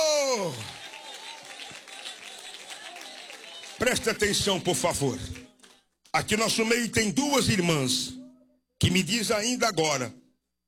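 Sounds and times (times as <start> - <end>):
audience clapping: 0.0 - 6.2
speech: 3.8 - 5.5, 6.1 - 8.2, 8.8 - 10.2.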